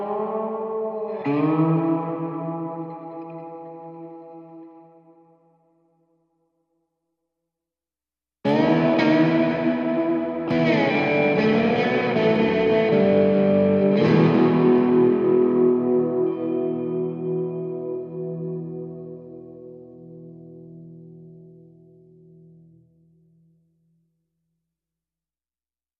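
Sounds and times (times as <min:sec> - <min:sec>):
guitar playing in E minor: 0:00.0 - 0:05.4, 0:08.5 - 0:22.9.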